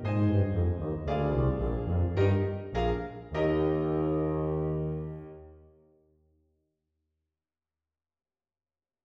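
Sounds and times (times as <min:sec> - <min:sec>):
tuba: 0:00.0 - 0:05.6.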